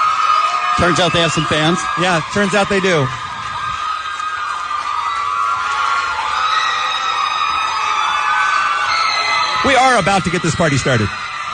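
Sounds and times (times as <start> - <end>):
large crowd cheering and screaming as a band walks onstage: 0.0 - 11.5
speech: 0.8 - 3.3, 9.8 - 11.2.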